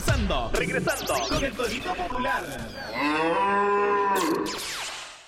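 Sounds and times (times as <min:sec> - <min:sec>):
speech: 0:00.2 - 0:04.8
bull mooing: 0:02.9 - 0:04.5.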